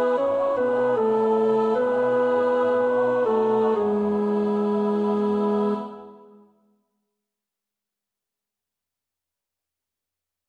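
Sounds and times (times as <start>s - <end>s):
tenor singing choir part: 0.0s - 6.5s.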